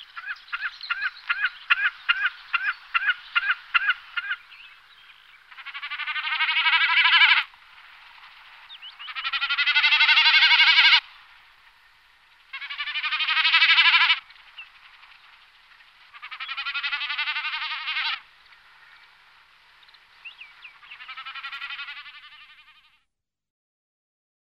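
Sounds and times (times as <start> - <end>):
common snipe calling: 0.0 - 7.5, 8.7 - 11.0, 12.5 - 14.8, 16.0 - 19.2, 20.2 - 22.9.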